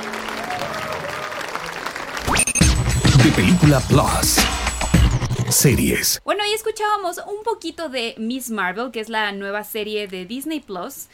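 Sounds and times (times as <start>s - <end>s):
audience applauding enthusiastically: 0.0s - 4.3s
speech: 3.2s - 4.6s, 5.5s - 11.1s.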